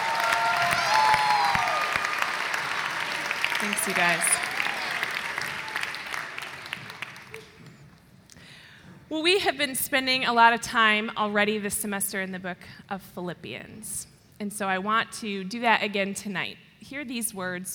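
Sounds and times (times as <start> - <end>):
audience clapping hands: 0.0 - 7.7
speech: 3.6 - 4.4, 9.1 - 17.7.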